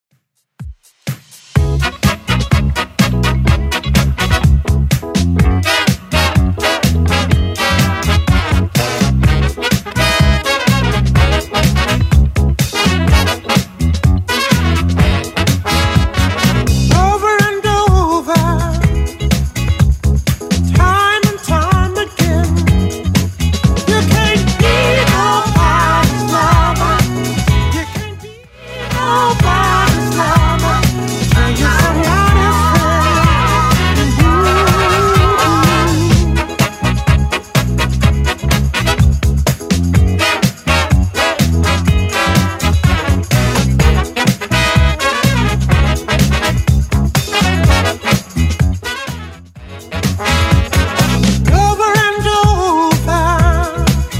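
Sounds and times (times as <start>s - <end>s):
70s style music: 0.4s - 54.1s.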